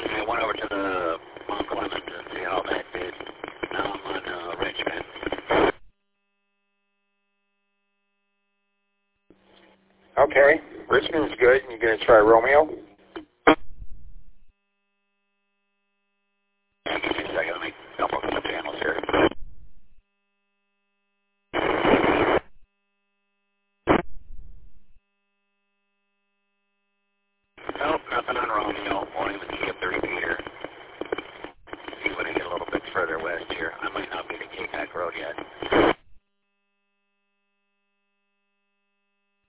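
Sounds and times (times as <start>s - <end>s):
radio static between transmissions: 0.0s - 5.9s, 9.5s - 14.5s, 16.8s - 20.0s, 21.5s - 22.6s, 23.9s - 25.0s, 27.6s - 36.2s
speech: 10.4s - 12.9s.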